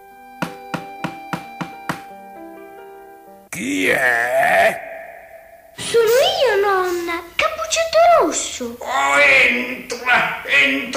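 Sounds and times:
knocking on a door: 0.4s - 2.1s
speech: 3.6s - 4.9s, 5.8s - 10.9s.

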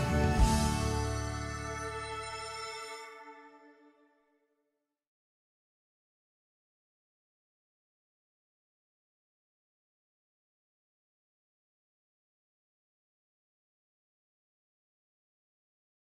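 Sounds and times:
instrumental music: 0.0s - 4.3s.

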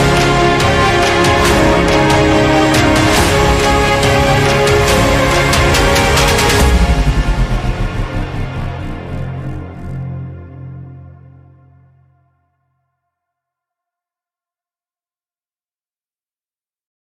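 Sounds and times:
hybrid epic trailer music: 0.0s - 12.3s.

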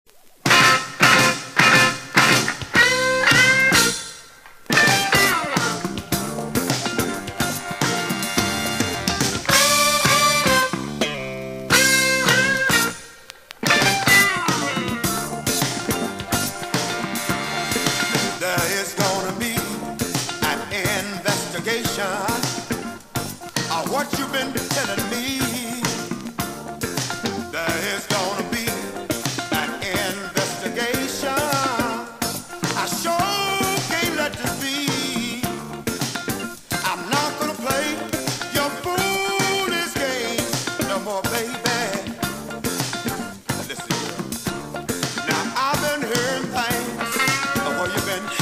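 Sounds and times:
funk music: 0.3s - 48.4s.

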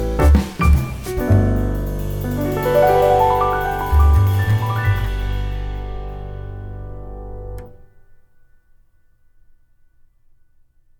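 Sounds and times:
jazz piano: 0.0s - 8.1s.

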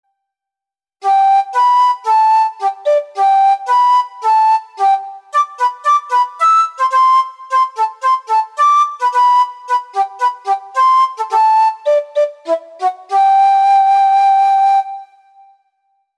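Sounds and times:
andante music: 1.0s - 15.6s.

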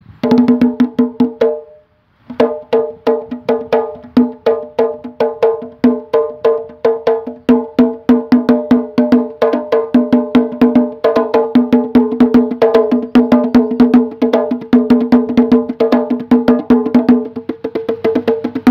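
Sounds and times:
drum: 0.1s - 1.6s, 2.3s - 18.6s.

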